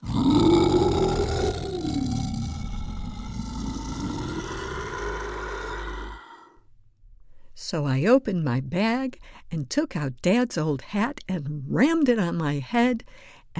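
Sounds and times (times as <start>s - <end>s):
monster growling howl: 0.0s - 6.6s
speech: 7.7s - 13.5s.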